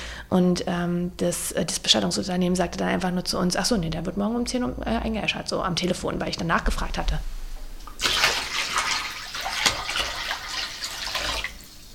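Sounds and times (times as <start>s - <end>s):
speech: 0.3s - 7.4s
feet being put into water: 7.9s - 11.9s.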